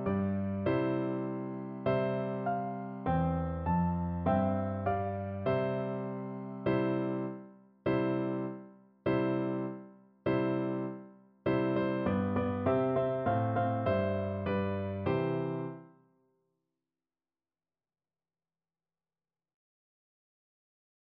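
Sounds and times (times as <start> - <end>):
piano duet: 0.0 - 16.0.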